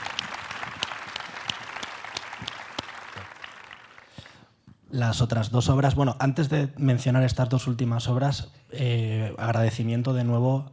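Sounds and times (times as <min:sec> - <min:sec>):
audience applause: 0:00.0 - 0:04.3
speech: 0:04.9 - 0:10.7.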